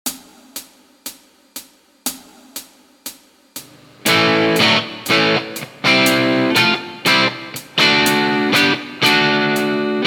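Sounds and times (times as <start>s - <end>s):
guitar licks: 4.0s - 10.0s.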